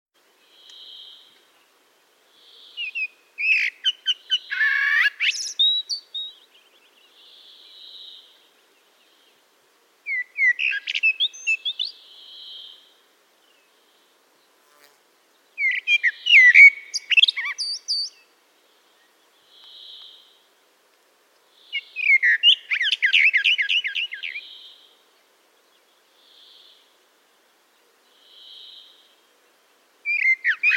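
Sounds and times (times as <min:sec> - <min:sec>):
soft background hiss: 0:00.2 - 0:30.7
common blackbird singing: 0:02.4 - 0:08.4, 0:10.1 - 0:12.8, 0:15.6 - 0:20.3, 0:21.6 - 0:24.9, 0:30.0 - 0:30.7.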